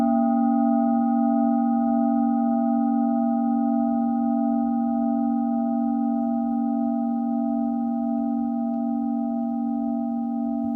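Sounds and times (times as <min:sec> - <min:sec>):
singing bowl humming: 0:00.0 - 0:10.7.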